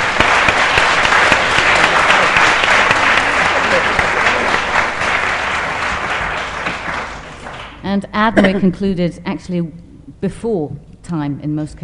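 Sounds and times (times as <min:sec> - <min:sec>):
audience clapping: 0:00.0 - 0:07.9
speech: 0:07.9 - 0:11.8.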